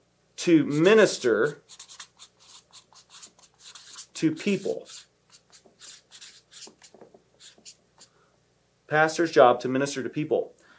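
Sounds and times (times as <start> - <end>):
speech: 0.4 - 1.9, 4.2 - 5.0, 8.9 - 10.6
pen or marker strokes of a pastor writing: 0.7 - 7.8.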